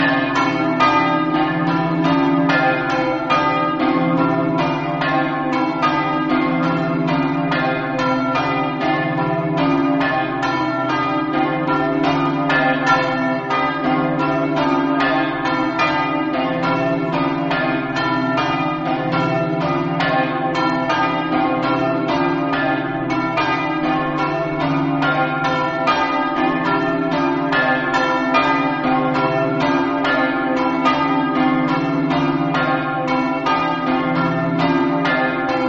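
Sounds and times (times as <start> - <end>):
bells ringing in Montenars: 0.0 - 35.6.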